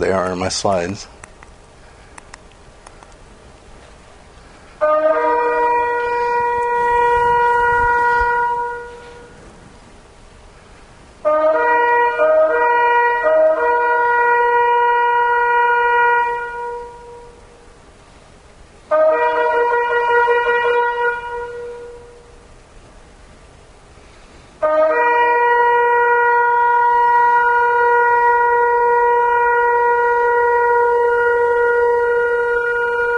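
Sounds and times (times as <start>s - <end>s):
speech: 0.0s - 1.2s
shofar blasts: 4.8s - 9.7s, 11.2s - 17.8s, 18.9s - 22.4s, 24.6s - 33.1s.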